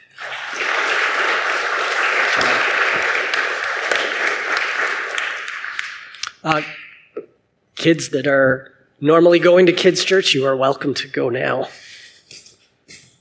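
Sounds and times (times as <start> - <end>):
church congregation applauding: 0.0 - 6.7
speech: 6.4 - 6.8, 7.8 - 11.8.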